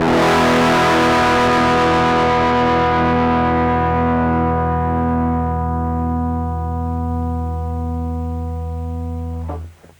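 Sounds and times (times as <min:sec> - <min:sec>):
fat distorted bass: 0:00.0 - 0:09.9.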